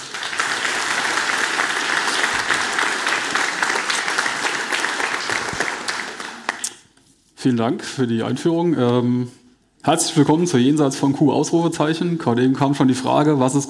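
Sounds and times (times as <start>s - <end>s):
audience applause: 0.0s - 6.7s
speech: 7.4s - 13.6s.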